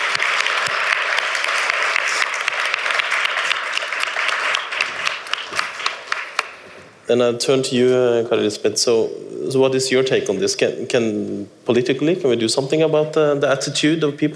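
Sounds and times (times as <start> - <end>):
audience applause: 0.0 - 6.7
speech: 7.1 - 14.3.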